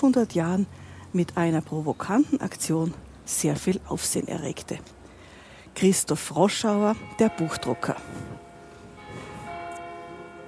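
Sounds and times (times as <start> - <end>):
speech: 0.0 - 5.0, 5.8 - 8.4
church bells ringing: 6.6 - 10.4.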